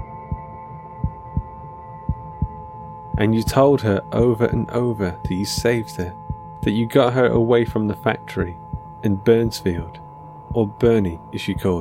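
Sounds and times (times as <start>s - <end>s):
slow heartbeat: 0.0s - 3.3s, 4.2s - 6.6s, 8.6s - 9.7s, 10.5s - 11.0s
steady humming drone: 0.0s - 11.8s
speech: 3.2s - 11.8s.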